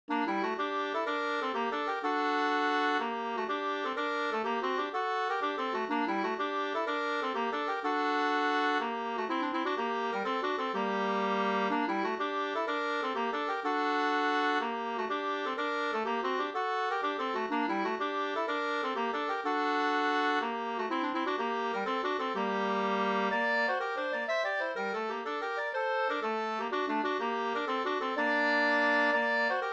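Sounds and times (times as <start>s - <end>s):
pols folk dance tune: 0.1s - 29.7s.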